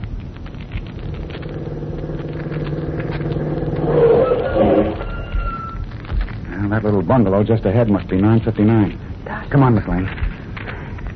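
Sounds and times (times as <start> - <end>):
car engine starting and driving off: 0.9 - 4.4
speech: 6.7 - 10.2.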